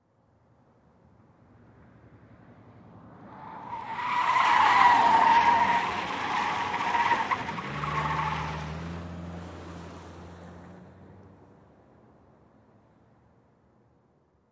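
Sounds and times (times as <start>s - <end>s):
sedan accelerating around a corner: 3.4s - 11.3s.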